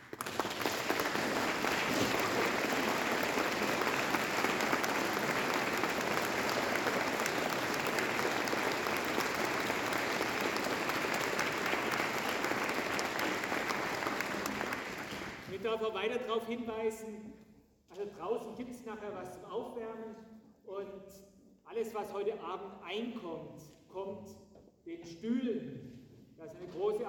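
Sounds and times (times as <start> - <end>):
large audience applause in a church concert: 0.0 - 15.5
speech: 15.8 - 17.4, 18.0 - 27.0.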